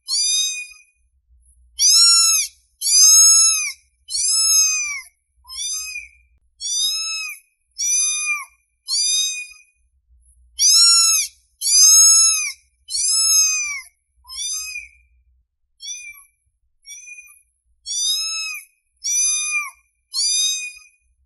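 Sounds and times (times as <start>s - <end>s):
domestic cat meowing: 0.0s - 0.8s, 1.8s - 9.6s, 10.6s - 15.0s, 15.8s - 16.3s, 17.9s - 20.9s.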